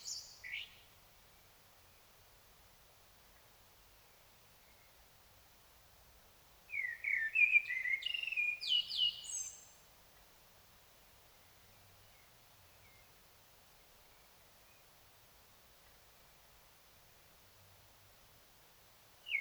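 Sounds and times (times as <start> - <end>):
common blackbird singing: 6.7 - 9.7.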